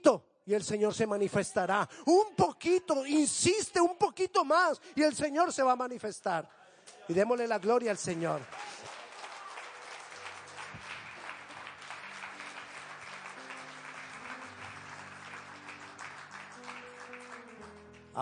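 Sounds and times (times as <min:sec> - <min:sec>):
speech: 0:00.0 - 0:08.7
audience applause: 0:07.2 - 0:18.2.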